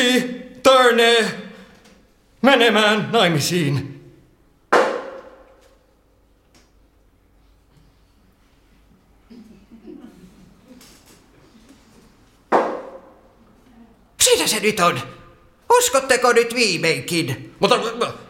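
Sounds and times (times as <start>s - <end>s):
speech: 0.0s - 1.4s, 2.4s - 4.0s, 14.3s - 18.2s
spirit knocks answering a séance question: 4.7s - 5.6s, 12.5s - 13.1s.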